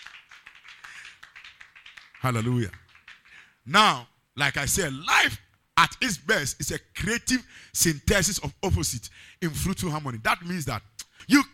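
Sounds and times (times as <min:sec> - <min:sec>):
audience clapping: 0:00.0 - 0:03.6
speech: 0:02.2 - 0:02.8, 0:03.6 - 0:11.5.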